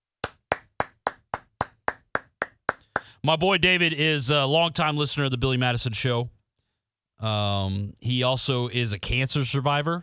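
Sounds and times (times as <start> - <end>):
clapping: 0.2 - 3.1
speech: 3.2 - 6.4, 7.2 - 10.0.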